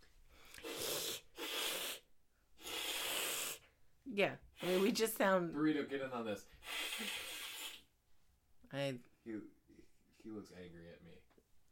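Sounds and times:
people imitating a cat's hiss: 0:00.5 - 0:03.7, 0:04.5 - 0:05.1, 0:06.6 - 0:07.9
speech: 0:04.2 - 0:07.2, 0:08.7 - 0:11.3.

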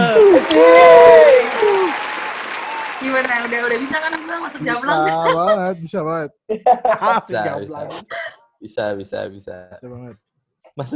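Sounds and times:
laughter: 0:00.0 - 0:01.0, 0:04.6 - 0:10.1
audience applause: 0:00.0 - 0:05.4
speech: 0:03.2 - 0:10.2, 0:10.8 - 0:10.9.

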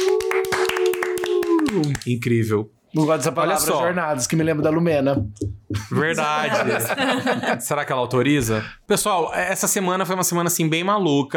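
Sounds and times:
hand clapping: 0:00.0 - 0:02.2
speech: 0:01.8 - 0:11.3
laughter: 0:05.7 - 0:07.8.

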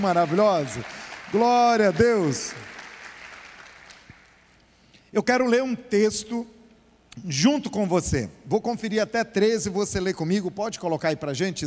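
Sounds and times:
speech: 0:00.0 - 0:02.7, 0:05.1 - 0:06.6, 0:07.2 - 0:11.6
audience applauding: 0:00.0 - 0:04.4.

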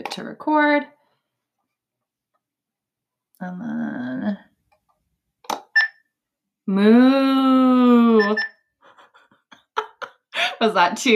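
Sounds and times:
speech: 0:00.0 - 0:01.0, 0:03.4 - 0:04.4, 0:06.7 - 0:08.4, 0:10.6 - 0:11.1
censor bleep sound effect: 0:08.2 - 0:08.6.

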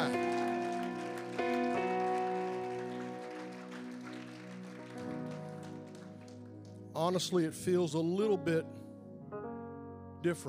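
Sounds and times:
audience hand clapping: 0:00.0 - 0:06.9
speech: 0:07.0 - 0:08.8, 0:10.2 - 0:10.4.

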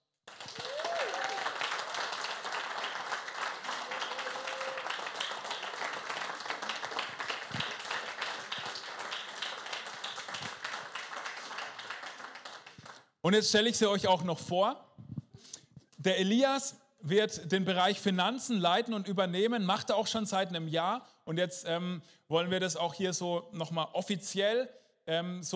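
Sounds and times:
crowd applause: 0:00.3 - 0:13.0
cheers and whistles: 0:00.5 - 0:01.7, 0:03.7 - 0:05.2
speech: 0:13.3 - 0:14.8, 0:16.0 - 0:25.5.

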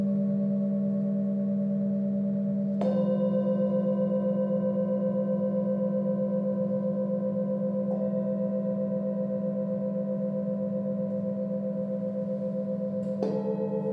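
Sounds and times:
singing bowls ringing: 0:00.0 - 0:13.9.

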